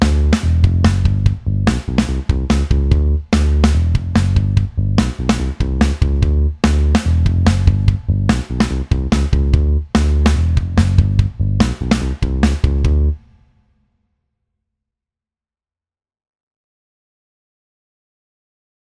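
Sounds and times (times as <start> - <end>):
backing track music: 0.0 - 13.4.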